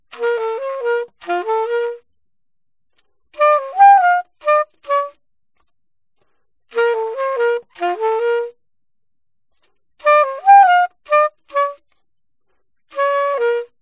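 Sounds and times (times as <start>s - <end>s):
alto saxophone: 0.1s - 2.1s, 3.0s - 5.2s, 6.7s - 8.6s, 9.6s - 12.0s, 12.9s - 13.8s.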